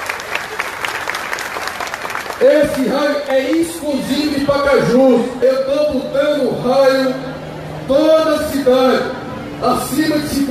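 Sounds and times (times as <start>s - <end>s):
crowd applauding military police officers at a public event in Pacajus, Ceará: 0.0s - 4.2s
speech: 2.4s - 7.3s, 7.9s - 10.4s.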